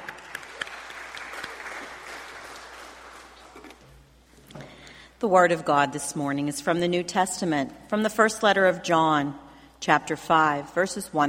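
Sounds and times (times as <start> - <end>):
audience applause: 0.0 - 3.7
speech: 5.2 - 11.2.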